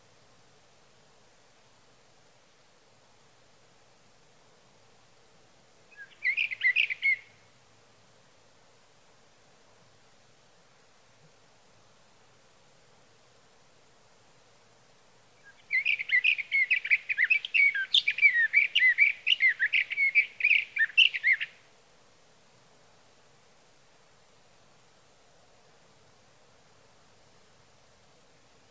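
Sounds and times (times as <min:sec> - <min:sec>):
sage thrasher song: 0:05.9 - 0:07.4, 0:15.4 - 0:21.6.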